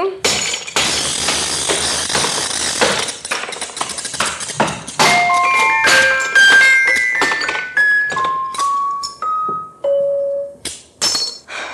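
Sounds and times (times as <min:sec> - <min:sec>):
hammer smashing a music box: 0:00.2 - 0:09.2.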